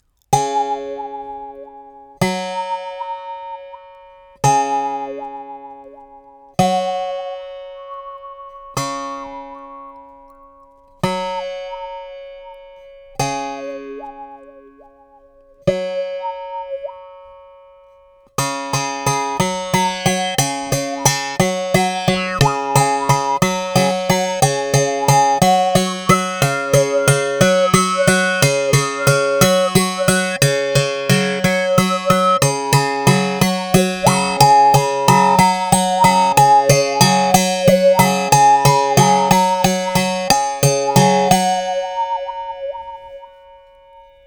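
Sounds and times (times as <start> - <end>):
classical two-string instrument: 0.0 - 17.0, 18.2 - 44.2
jaw harps: 18.7 - 43.4.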